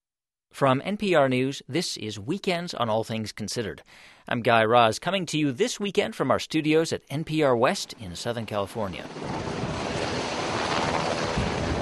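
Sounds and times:
speech: 0.5s - 9.6s
U.S. Navy helicopters loading relief supplies for northern Japan: 9.0s - 11.8s.

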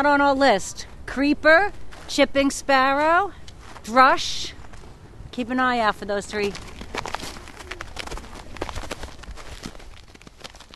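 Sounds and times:
speech: 0.0s - 4.6s, 5.4s - 6.7s
footsteps crunching in snow: 0.8s - 5.1s, 6.3s - 10.7s.

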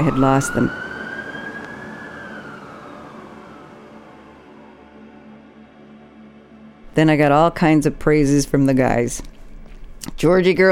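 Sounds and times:
speech: 0.0s - 0.8s, 7.0s - 9.3s, 10.1s - 10.7s
police car sirens passing by: 0.0s - 6.5s.

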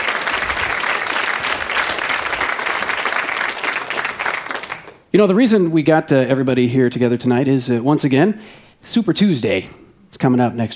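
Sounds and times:
audience applause: 0.0s - 5.0s
speech: 5.2s - 10.7s.

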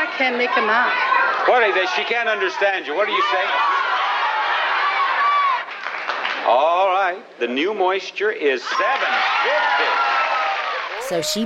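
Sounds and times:
game show audience cheering and yelling at a contestant: 0.0s - 6.3s, 8.6s - 11.4s
speech: 0.2s - 3.7s, 6.5s - 10.2s, 11.1s - 11.4s.

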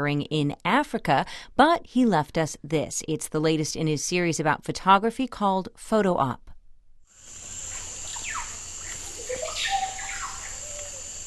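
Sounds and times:
speech: 0.0s - 6.4s
constant high insect drone in the Amazon rainforest: 7.1s - 11.2s
bird chirps and short descending calls in the Amazon rainforest: 7.4s - 11.2s.

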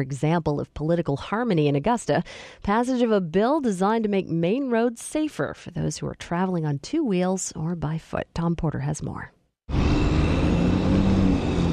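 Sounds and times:
speech: 0.0s - 9.9s
traffic at Franklin Arterial and Marginal Way intersection, Portland, Maine: 9.7s - 11.7s.

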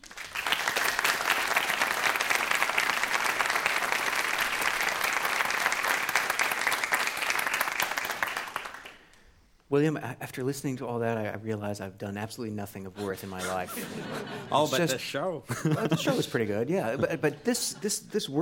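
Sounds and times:
audience applause welcoming a guest: 0.0s - 9.2s
speech: 9.7s - 18.3s
laughter: 13.0s - 18.3s.

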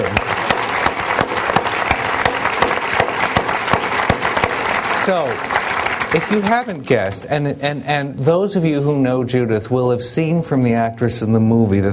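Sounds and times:
sharper individual claps: 0.0s - 6.6s
audience applause: 0.0s - 6.8s
speech: 5.1s - 11.9s.

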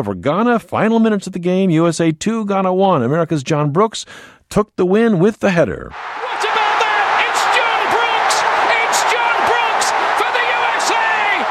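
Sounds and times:
speech: 0.0s - 6.2s
American soccer fans in Kansas City cheering a victory: 5.9s - 11.5s.

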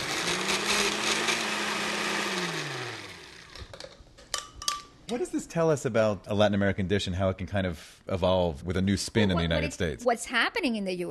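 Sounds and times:
blender pureeing a mixture with oregano and allspice: 0.0s - 3.8s
speech: 5.1s - 11.0s.

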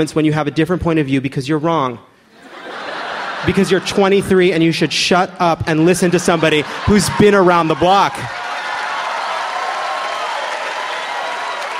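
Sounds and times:
speech: 0.0s - 2.1s, 3.4s - 8.4s
laughter: 2.3s - 8.4s
audience applause: 6.3s - 11.7s.

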